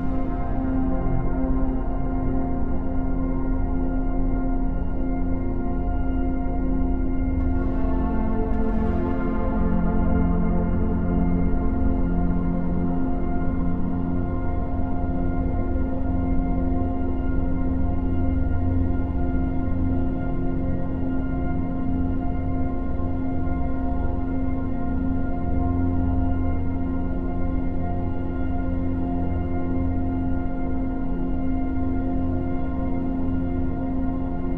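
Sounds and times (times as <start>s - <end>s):
mysterious ambient floating space chords: 0.0s - 34.5s.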